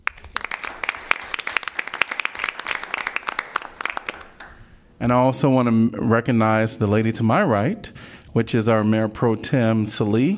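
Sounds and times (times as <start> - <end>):
round of applause from a small group: 0.0 - 4.6
speech: 5.0 - 10.3.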